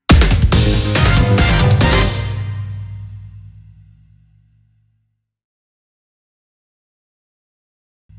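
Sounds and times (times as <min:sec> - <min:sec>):
quest clear jingle: 0:00.6 - 0:03.3.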